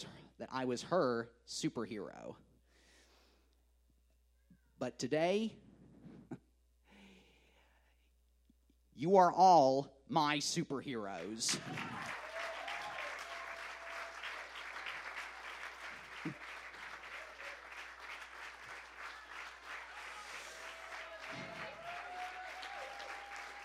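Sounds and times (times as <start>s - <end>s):
speech: 0.0s - 2.5s, 4.8s - 5.6s, 9.0s - 12.2s
crowd applauding: 11.5s - 23.6s
whistles and cheers: 11.5s - 23.6s.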